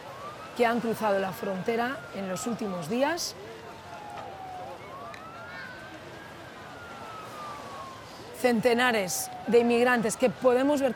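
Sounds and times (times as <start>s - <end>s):
sirens of the state security forces: 0.0s - 10.9s
speech: 0.6s - 3.5s, 8.4s - 10.9s.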